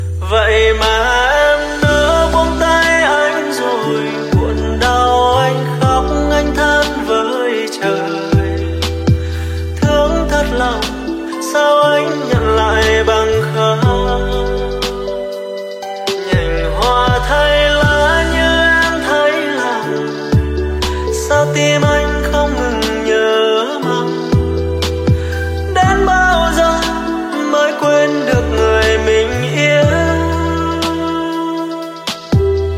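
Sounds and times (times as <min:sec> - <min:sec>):
lofi music: 0:00.0 - 0:32.7.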